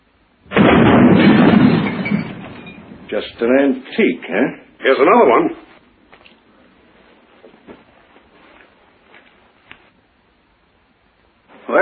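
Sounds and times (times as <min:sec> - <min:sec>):
gunshot from an antique gun: 0:00.5 - 0:02.4
speech: 0:03.1 - 0:05.6.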